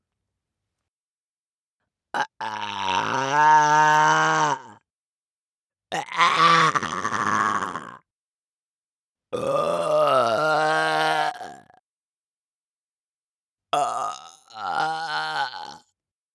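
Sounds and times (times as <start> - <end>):
person burping: 2.2 - 4.7, 5.9 - 8.0, 9.4 - 11.8, 13.8 - 15.8.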